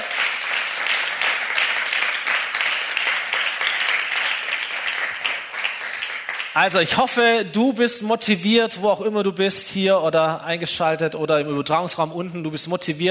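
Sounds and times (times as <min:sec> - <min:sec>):
audience applause for the band: 0:00.0 - 0:06.8
speech: 0:06.6 - 0:13.0.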